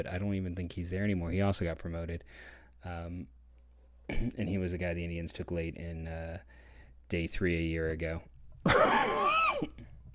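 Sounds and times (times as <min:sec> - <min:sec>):
speech: 0:00.0 - 0:03.4, 0:04.1 - 0:09.9
cough: 0:04.1 - 0:04.5, 0:08.6 - 0:09.8.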